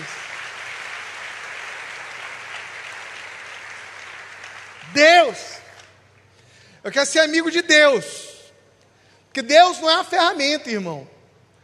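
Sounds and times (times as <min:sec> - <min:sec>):
audience applause: 0:00.0 - 0:05.9
speech: 0:04.9 - 0:05.6, 0:06.8 - 0:08.3, 0:09.3 - 0:11.1.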